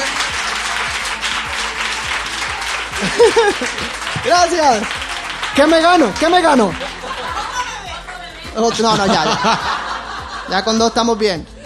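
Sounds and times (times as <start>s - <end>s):
audience applause: 0.0s - 8.2s
laughter: 2.6s - 11.6s
speech: 3.0s - 7.0s, 8.6s - 9.7s, 10.5s - 11.5s.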